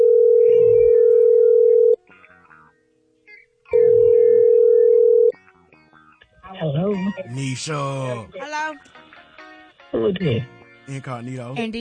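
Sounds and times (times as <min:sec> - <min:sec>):
telephone tone as a call is placed: 0:00.0 - 0:02.0, 0:03.7 - 0:05.3
speech: 0:07.3 - 0:09.1, 0:09.9 - 0:11.7.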